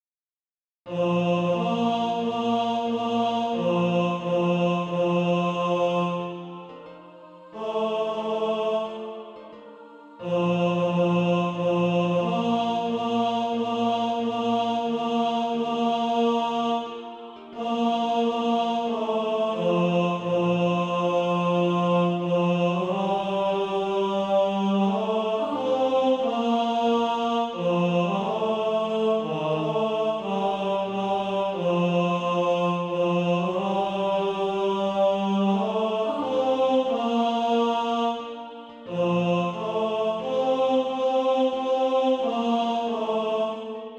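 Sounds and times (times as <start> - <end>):
tenor SATB practice part: 0.9 - 43.9.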